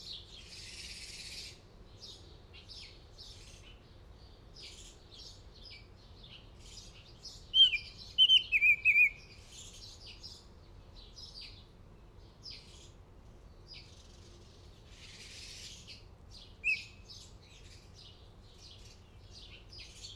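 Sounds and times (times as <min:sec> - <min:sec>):
Northern oriole whistling: 0:07.6 - 0:09.2.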